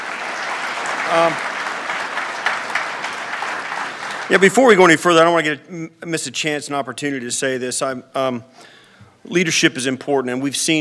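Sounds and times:
applause: 0.0s - 5.0s
speech: 1.1s - 1.5s, 4.3s - 10.7s.

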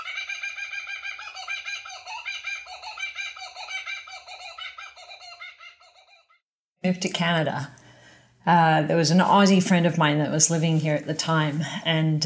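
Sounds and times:
kookaburra calls as phone alarm ringtone: 0.0s - 6.4s
speech: 6.8s - 7.8s, 8.4s - 12.2s.

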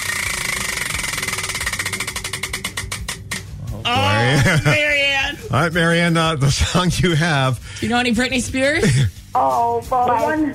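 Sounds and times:
song-selection prize wheel pointer ticking against pegs: 0.0s - 3.5s
laughter: 3.9s - 5.0s
speech: 5.5s - 10.5s.

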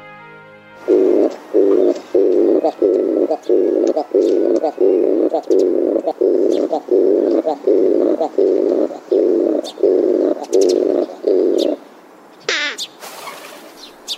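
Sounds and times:
male oriental turtle dove courtship song: 0.8s - 11.8s.

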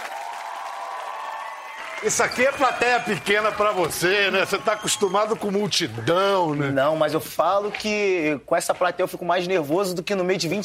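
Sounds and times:
audience applause: 0.0s - 7.8s
speech: 2.0s - 10.6s.

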